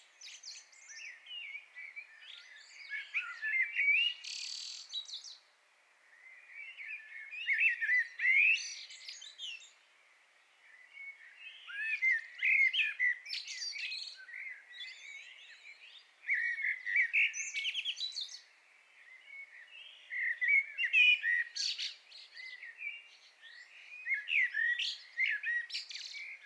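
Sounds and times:
common blackbird song: 0.0s - 26.4s.

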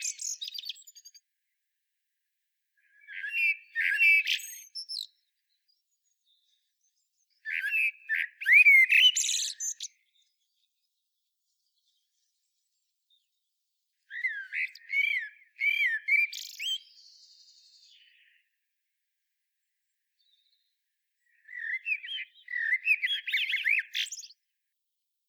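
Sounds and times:
common blackbird singing: 0.0s - 1.2s, 2.8s - 11.0s, 14.0s - 18.6s, 20.2s - 24.4s.

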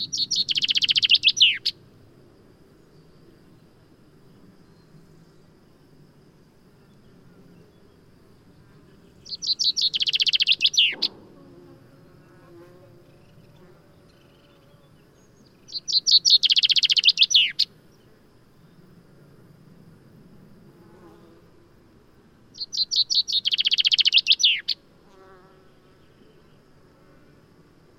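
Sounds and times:
common chaffinch singing: 0.0s - 1.8s, 9.0s - 11.2s, 13.1s - 18.1s, 22.5s - 24.8s.

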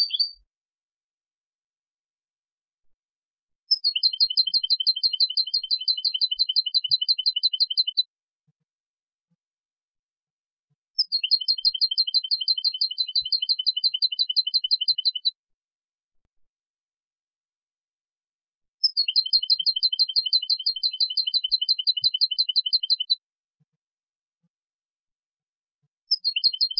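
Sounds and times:
European goldfinch Carduelis carduelis singing: 3.7s - 8.0s, 11.0s - 15.3s, 18.8s - 23.2s, 26.1s - 26.7s.

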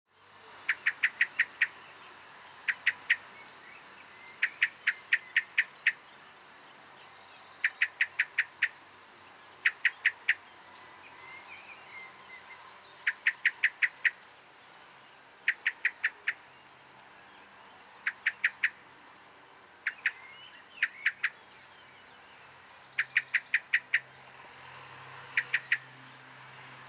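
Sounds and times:
common blackbird chink calls: 0.7s - 1.8s, 2.6s - 6.0s, 7.6s - 8.8s, 9.6s - 14.3s, 15.4s - 16.7s, 18.0s - 18.8s, 19.8s - 22.1s, 22.9s - 24.1s, 25.3s - 25.9s.

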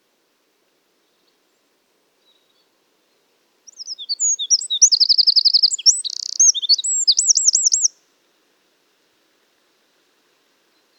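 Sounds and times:
Eurasian wren Troglodytes troglodytes singing: 3.7s - 8.0s.

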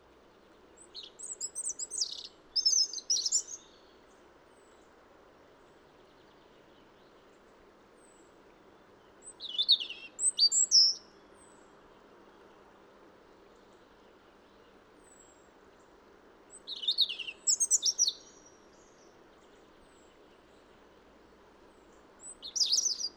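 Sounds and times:
European robin singing: 0.8s - 3.9s, 9.2s - 11.0s, 16.5s - 20.1s, 22.2s - 23.1s.

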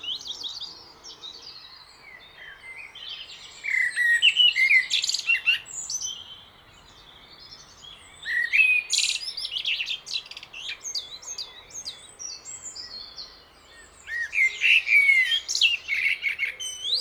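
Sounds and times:
common blackbird singing: 0.0s - 17.0s.

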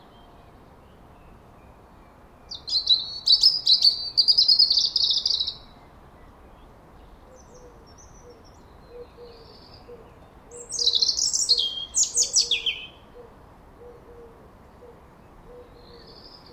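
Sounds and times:
European robin (Erithacus rubecula) song: 0.0s - 16.5s.

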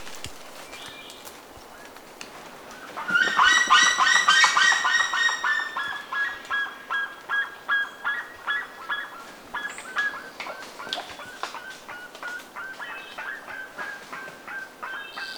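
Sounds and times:
birds honking calls: 2.9s - 15.3s.

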